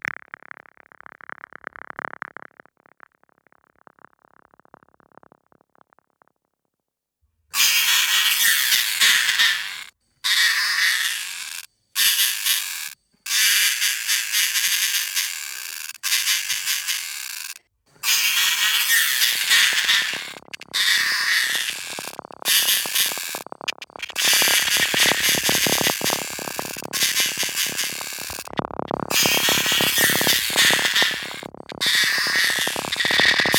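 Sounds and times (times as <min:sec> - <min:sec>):
insects: 0:07.6 - 0:33.5.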